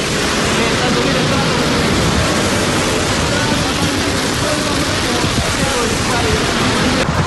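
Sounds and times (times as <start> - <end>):
strong wind pushing the flames: 0.0 - 7.2
wildfire flames burning: 0.0 - 7.2.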